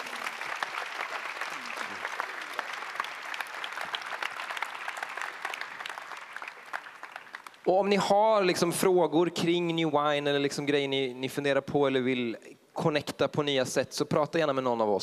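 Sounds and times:
audience applause: 0.0 - 7.7
speech: 7.7 - 15.0.

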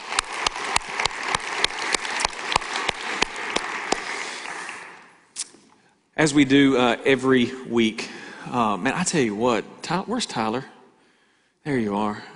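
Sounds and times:
audience applause in a room: 0.0 - 5.2
speech: 6.2 - 10.8, 11.6 - 12.3.

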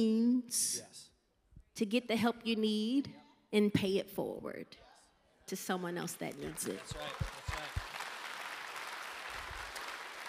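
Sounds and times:
speech: 0.0 - 1.0, 1.8 - 4.9, 5.5 - 7.4
audience clapping: 6.1 - 10.2.

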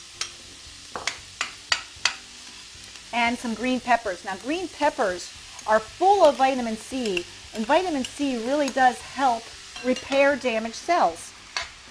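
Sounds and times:
celery and onions frying in a hot pan: 0.0 - 11.8
knocks and clacks of ingredients and utensil in a pan: 0.9 - 2.2
speech: 3.1 - 11.3.

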